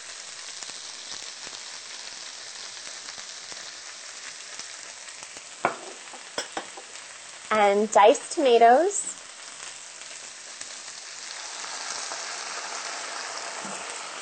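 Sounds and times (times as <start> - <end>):
organic pumpkin sizzling in a hot pan: 0.0 - 14.1
stirring knocks in a pan: 5.6 - 6.9
speech: 7.6 - 9.1.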